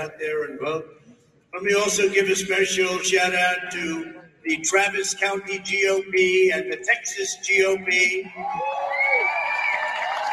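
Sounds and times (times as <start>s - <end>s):
speech: 0.0s - 9.0s
crowd cheering at rally: 8.1s - 10.3s.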